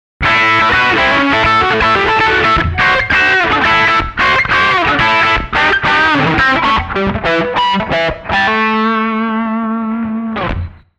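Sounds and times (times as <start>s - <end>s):
lead melody: 0.3s - 10.2s.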